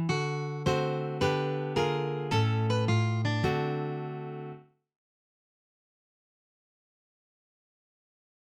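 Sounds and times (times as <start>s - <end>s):
blues guitar playing: 0.0s - 4.6s.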